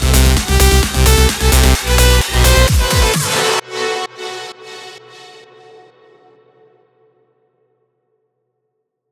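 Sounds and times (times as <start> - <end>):
future rave music: 0.0 - 4.5.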